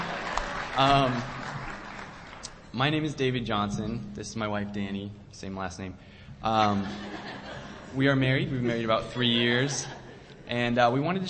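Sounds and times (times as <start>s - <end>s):
audience applause: 0.0s - 2.6s
speech: 0.8s - 1.4s, 2.8s - 11.2s
laughter: 6.6s - 10.6s.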